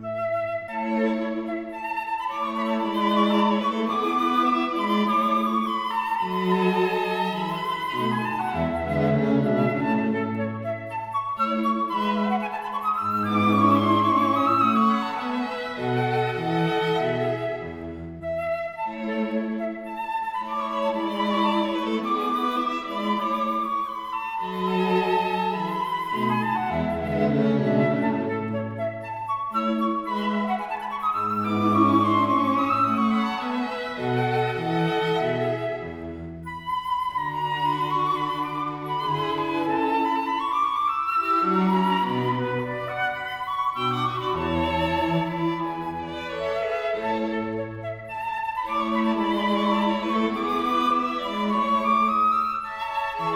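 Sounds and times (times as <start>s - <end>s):
flute: 0.0s - 53.3s
string quartet: 0.0s - 53.3s.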